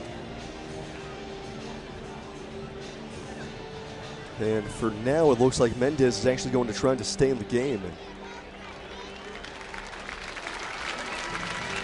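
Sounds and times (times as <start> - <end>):
speech: 4.4 - 8.1
stadium crowd applauding: 8.5 - 11.8.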